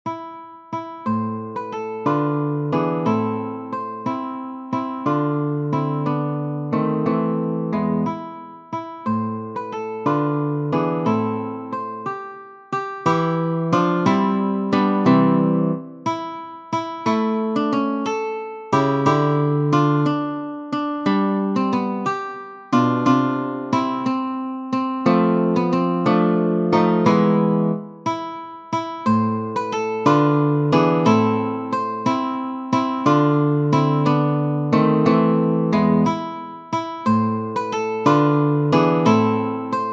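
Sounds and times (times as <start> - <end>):
larghetto alla siciliana on guitar: 0.0 - 39.9.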